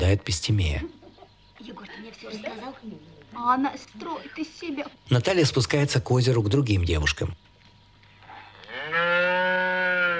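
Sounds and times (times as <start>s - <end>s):
speech: 0.0s - 1.0s, 1.6s - 7.5s
cows mooing: 8.2s - 10.1s.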